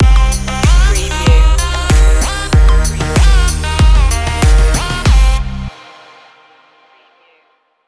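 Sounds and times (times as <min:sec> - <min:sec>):
upbeat mid-tempo tropical pop track with catchy synths: 0:00.0 - 0:05.5.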